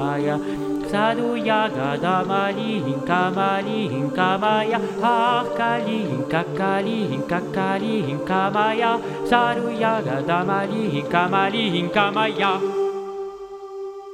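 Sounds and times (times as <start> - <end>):
alto voices singing: 0.0 - 14.1.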